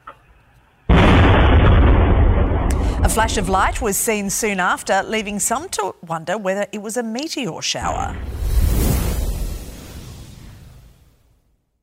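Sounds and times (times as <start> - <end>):
explosion blast: 0.9 - 4.5, 7.8 - 11.4
speech: 3.2 - 8.3.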